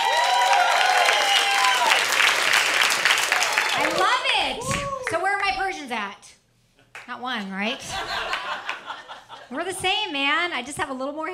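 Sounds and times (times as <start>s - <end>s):
people cheering: 0.0s - 5.3s
audience clapping for a comedian at a stand-up show: 0.0s - 5.6s, 8.2s - 9.1s
speech: 5.1s - 6.3s, 7.1s - 8.8s, 9.5s - 11.3s
laughter: 7.7s - 9.7s.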